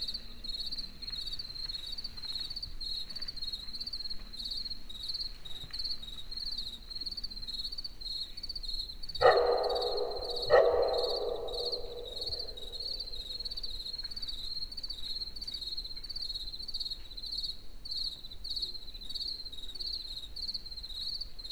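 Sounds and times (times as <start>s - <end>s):
crickets chirping in a forest in the evening: 9.2s - 13.7s.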